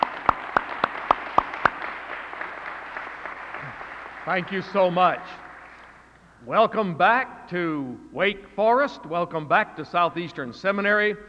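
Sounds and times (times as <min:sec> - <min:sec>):
audience applause: 0:00.0 - 0:06.0
speech: 0:04.3 - 0:05.4, 0:06.4 - 0:11.2.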